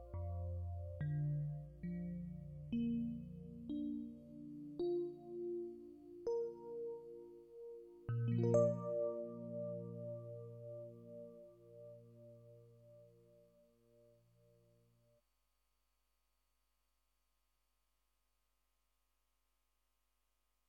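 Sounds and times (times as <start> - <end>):
electric piano: 0.0 - 14.5.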